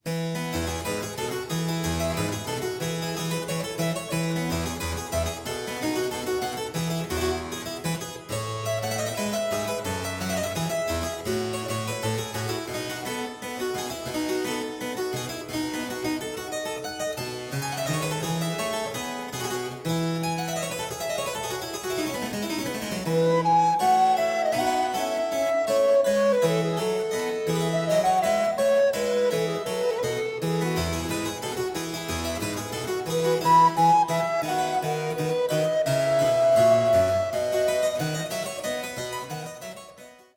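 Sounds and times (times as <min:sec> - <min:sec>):
allegro classical piece: 0:00.0 - 0:40.3.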